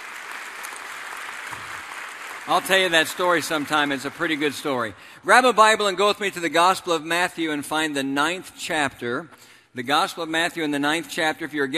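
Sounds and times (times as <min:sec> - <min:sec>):
audience applause: 0:00.0 - 0:04.9
speech: 0:02.4 - 0:11.7.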